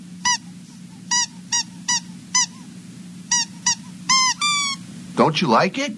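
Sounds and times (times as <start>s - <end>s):
squeaky toy mouse squeaking: 0.2s - 0.5s, 1.1s - 2.6s, 3.3s - 4.8s
speech: 5.2s - 5.9s.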